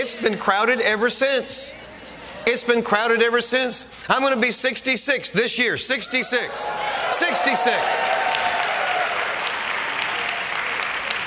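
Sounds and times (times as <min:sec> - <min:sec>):
speech: 0:00.1 - 0:01.8, 0:02.4 - 0:08.4
audience clapping: 0:06.7 - 0:11.2.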